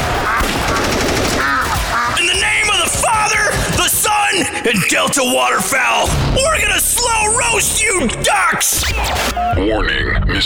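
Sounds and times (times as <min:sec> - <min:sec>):
shotgun shots: 0:00.0 - 0:03.9
speech: 0:04.6 - 0:10.4.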